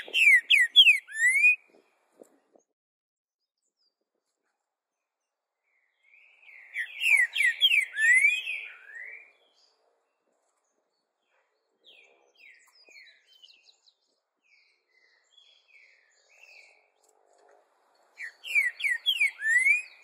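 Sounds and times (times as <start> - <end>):
green-winged saltator whistled song: 0.0 - 1.8, 5.7 - 9.8, 11.8 - 16.9, 18.1 - 20.0.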